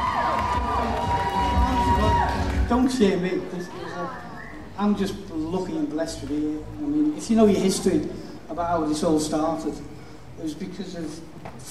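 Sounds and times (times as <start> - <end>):
crowd of about 1,500 cheering at a dance celebration: 0.0 - 4.6
speech: 2.7 - 11.6.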